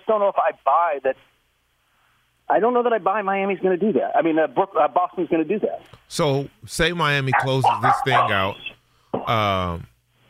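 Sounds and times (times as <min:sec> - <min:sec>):
speech: 0:00.1 - 0:01.4, 0:02.5 - 0:09.9
dog barking: 0:07.3 - 0:08.6.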